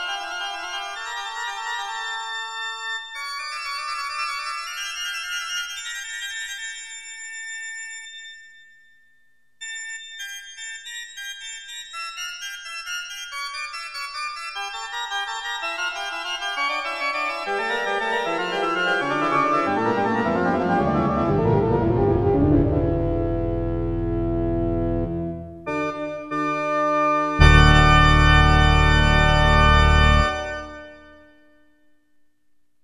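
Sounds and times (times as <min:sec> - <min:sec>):
organ music: 0:00.0 - 0:06.9, 0:14.5 - 0:31.3.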